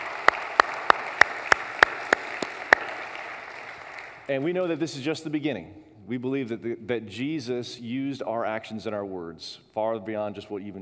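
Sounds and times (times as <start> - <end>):
audience applause: 0.0 - 4.3
speech: 4.3 - 10.7.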